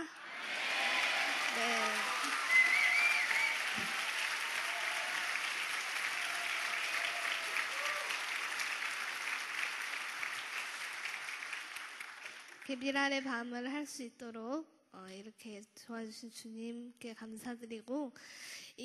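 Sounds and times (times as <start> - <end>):
audience applause: 0.0 - 12.8
speech: 12.7 - 18.8.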